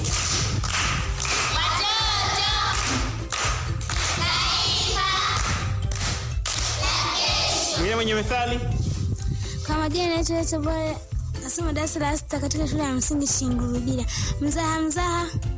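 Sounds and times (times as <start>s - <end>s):
rhythmic clapping from pupils at a primary school: 0.0s - 8.2s
speech: 8.0s - 8.7s, 9.8s - 15.5s.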